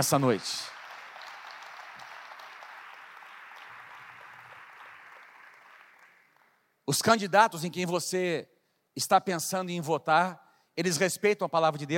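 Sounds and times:
speech: 0.0 - 0.7, 6.9 - 11.9
audience applause: 0.0 - 6.6.

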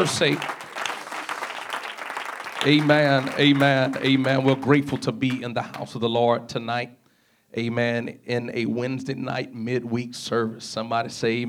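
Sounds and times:
speech: 0.0 - 0.6, 2.6 - 11.4
audience clapping hands: 0.0 - 6.1.

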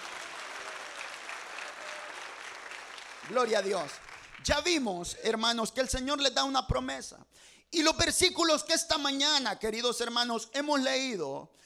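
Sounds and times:
audience applause: 0.0 - 4.6
speech: 3.3 - 11.6.

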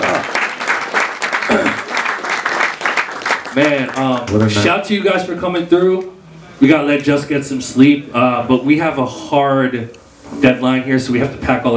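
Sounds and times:
audience applause: 0.0 - 4.7
speech: 1.5 - 1.8, 3.6 - 11.7.

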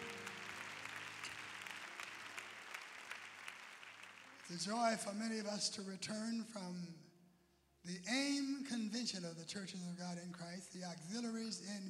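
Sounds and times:
audience applause: 0.0 - 5.0
speech: 4.5 - 7.1, 7.8 - 11.8.

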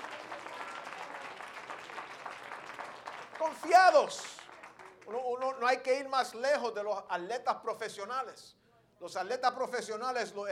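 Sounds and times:
audience applauding: 0.0 - 5.5
speech: 3.4 - 4.3, 5.1 - 10.5.

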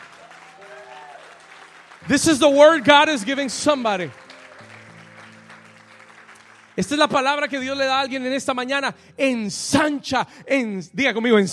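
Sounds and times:
room full of people applauding: 0.0 - 8.2
speech: 2.0 - 4.2, 6.8 - 11.5.

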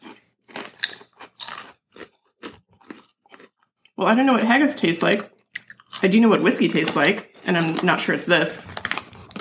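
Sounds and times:
crunching rippled barbecue-flavoured potato chips: 0.0 - 4.0, 5.6 - 6.1, 8.6 - 9.3
speech: 4.0 - 5.3, 6.0 - 8.8.

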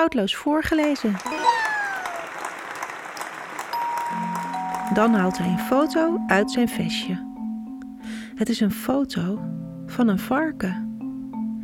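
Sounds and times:
speech: 0.0 - 1.6, 4.9 - 7.3, 8.4 - 10.8
applause: 0.6 - 6.1.

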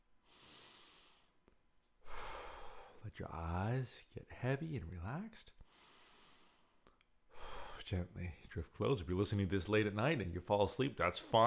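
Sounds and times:
stronger exhale out through the mouth: 0.3 - 1.3, 5.7 - 7.8
slow deep breath in through the nose: 0.3 - 1.4, 2.0 - 3.0, 5.6 - 7.8
speech: 3.0 - 5.6, 7.9 - 11.4.

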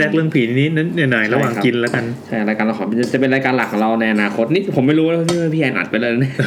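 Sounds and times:
speech: 0.0 - 6.4
mixing pad thai noodles in a container: 1.1 - 6.0.

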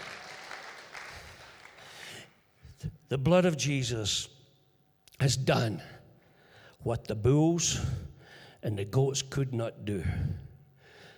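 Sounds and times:
audience applauding: 0.0 - 2.1
speech: 3.1 - 4.4, 5.2 - 6.0, 6.8 - 8.0, 8.6 - 10.4.

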